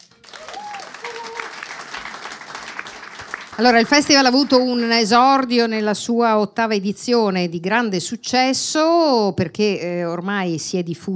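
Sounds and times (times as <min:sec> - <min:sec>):
audience applause: 0:00.0 - 0:04.3
speech: 0:03.6 - 0:11.1.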